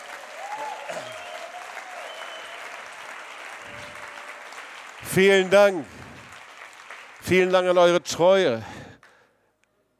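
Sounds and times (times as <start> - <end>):
faint whistles and cheers: 0.0 - 4.7
audience applause: 0.0 - 9.2
speech: 5.0 - 6.0, 7.2 - 8.8.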